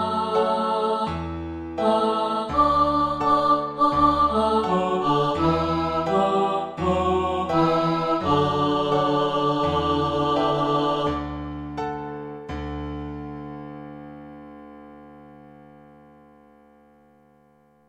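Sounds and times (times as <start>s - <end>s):
choir singing in unison: 0.0s - 11.6s.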